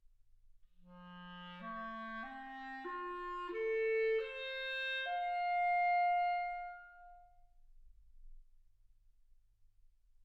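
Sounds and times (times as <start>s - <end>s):
clarinet: 0.9s - 7.4s.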